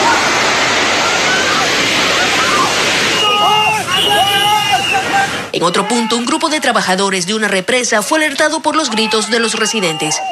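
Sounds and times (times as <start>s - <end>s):
mudflow wave of mud and debris: 0.0s - 5.6s
speech: 5.6s - 10.3s.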